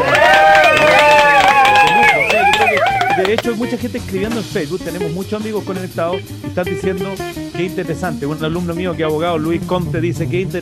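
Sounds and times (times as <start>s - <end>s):
applause: 0.0s - 3.4s
speech: 3.5s - 10.6s.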